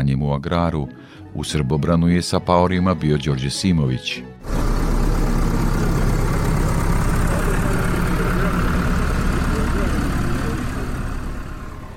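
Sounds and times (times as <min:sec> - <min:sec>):
speech: 0:00.0 - 0:04.7
tractor engines rumbling during farmers' protest drive in Srbobran: 0:04.4 - 0:11.9.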